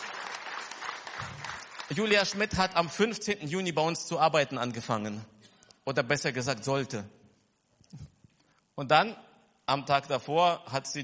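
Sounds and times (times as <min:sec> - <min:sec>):
audience applauding: 0:00.0 - 0:02.8
speech: 0:01.9 - 0:07.2, 0:08.8 - 0:11.0.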